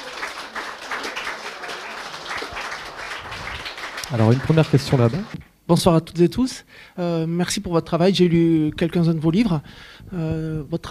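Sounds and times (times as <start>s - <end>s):
audience applause: 0.0s - 5.4s
speech: 4.1s - 10.8s.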